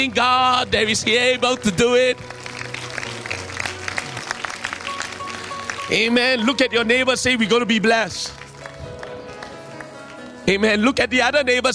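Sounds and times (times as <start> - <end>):
speech: 0.0 - 2.4, 5.9 - 8.4, 10.5 - 11.7
audience clapping hands: 0.0 - 6.7, 7.8 - 10.4.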